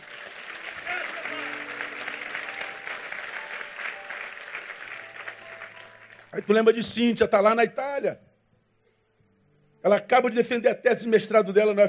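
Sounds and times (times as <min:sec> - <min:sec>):
people applauding: 0:00.0 - 0:07.0
speech: 0:06.3 - 0:08.3, 0:09.8 - 0:11.8.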